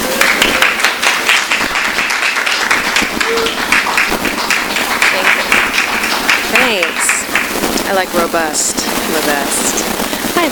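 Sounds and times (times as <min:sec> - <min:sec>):
audience applause: 0:00.0 - 0:08.0
speech: 0:08.0 - 0:10.5.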